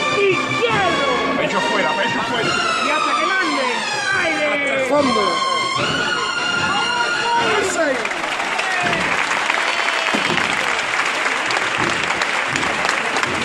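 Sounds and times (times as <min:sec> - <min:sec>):
street crowd applauding a procession in calle Adriano: 0:00.2 - 0:13.4.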